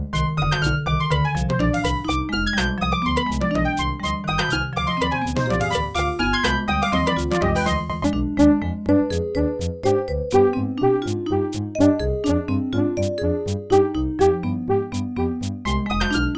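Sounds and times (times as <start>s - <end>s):
midi music: 0.1s - 16.3s.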